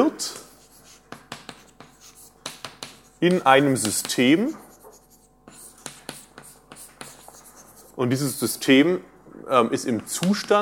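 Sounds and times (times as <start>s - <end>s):
speech: 0.0s - 0.4s, 3.2s - 4.6s, 8.0s - 10.6s
pen scratching out handwritten text: 0.4s - 8.4s.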